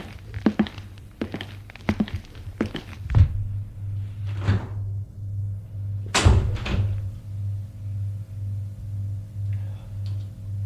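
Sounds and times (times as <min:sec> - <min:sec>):
footsteps thumping in an audio drama: 0:00.0 - 0:03.5
low pulsing hum: 0:00.0 - 0:10.6
lift doors thudding in an audio drama: 0:06.1 - 0:07.1.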